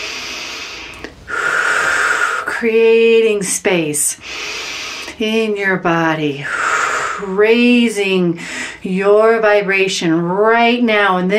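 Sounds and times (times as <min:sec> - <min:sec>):
sharp nasal intake of breath during a guided meditation: 0:00.0 - 0:02.6, 0:04.2 - 0:05.2, 0:06.4 - 0:07.4
speech: 0:02.6 - 0:11.3.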